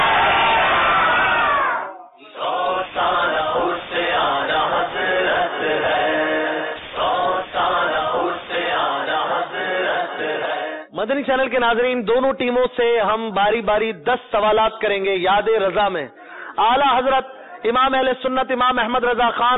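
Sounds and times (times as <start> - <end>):
crowd chanting a religious slogan at a quiz contest: 0.0 - 10.9
speech: 11.0 - 19.5.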